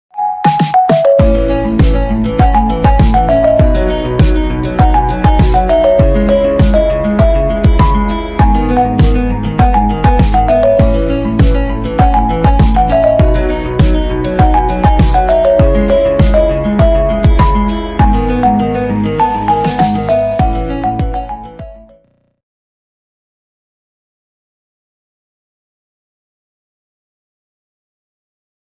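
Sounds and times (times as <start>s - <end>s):
marimba ringtone: 0.1s - 22.1s.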